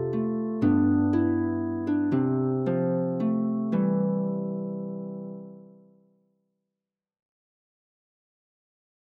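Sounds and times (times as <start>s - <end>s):
harp melody: 0.0s - 6.0s.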